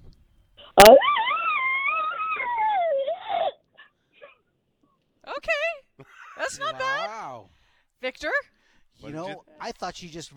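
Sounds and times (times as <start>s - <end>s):
person imitating an elk bugle: 0.7s - 3.5s
speech: 0.8s - 1.2s, 7.0s - 10.3s.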